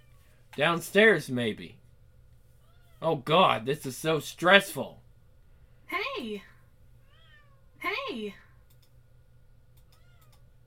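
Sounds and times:
speech: 0.6 - 1.8, 3.0 - 5.0, 5.9 - 6.5, 7.8 - 8.4
house cat meowing: 7.0 - 7.6, 9.9 - 10.4
ticking clicks: 8.6 - 9.0.

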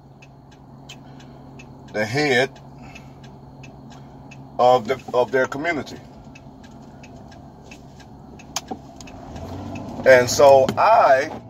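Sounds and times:
road rumble inside a car being driven: 0.0 - 11.4
soft clicks: 0.2 - 10.8
speech: 1.9 - 2.7, 4.6 - 6.1, 10.1 - 11.4.

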